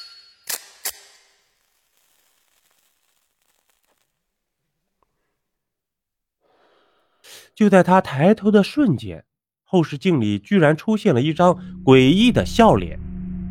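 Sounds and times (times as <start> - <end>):
lighter clicks lighting a cigarette: 0.5 - 1.4
soft lighter hiss: 0.5 - 4.2
speech: 7.6 - 13.0
faint breathy rush: 11.4 - 13.0.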